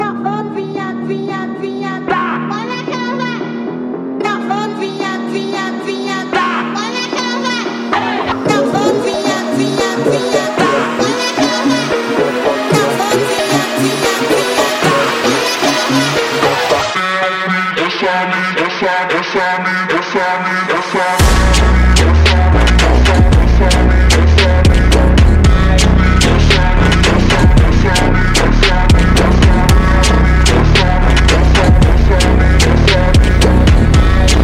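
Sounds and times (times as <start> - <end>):
phonk music: 0.0 - 34.4.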